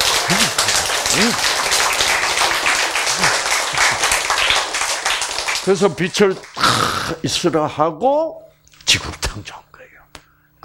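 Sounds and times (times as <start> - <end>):
audience clapping: 0.0 - 7.2
speech: 1.2 - 1.4, 5.7 - 9.6.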